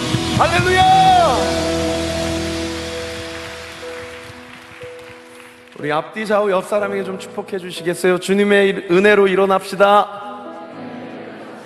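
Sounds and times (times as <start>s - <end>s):
audience applauding: 0.0s - 5.9s
speech: 0.4s - 1.6s, 5.8s - 10.2s.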